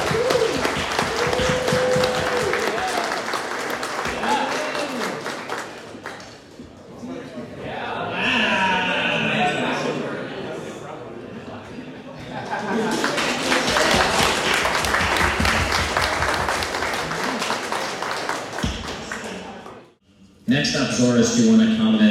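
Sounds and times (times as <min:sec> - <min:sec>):
audience applause: 0:00.0 - 0:06.5, 0:12.5 - 0:19.9
laughter: 0:08.2 - 0:16.3
speech: 0:21.0 - 0:22.0.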